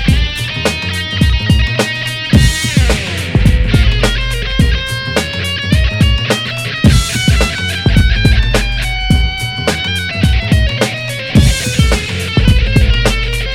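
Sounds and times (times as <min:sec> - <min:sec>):
funky music loop: 0:00.0 - 0:13.5.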